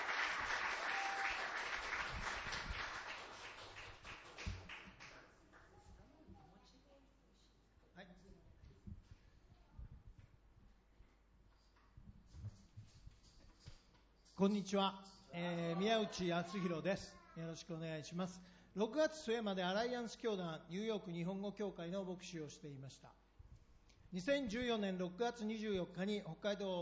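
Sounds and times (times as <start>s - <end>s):
audience applause: 0.0s - 5.3s
speech: 14.4s - 23.2s, 24.1s - 26.7s.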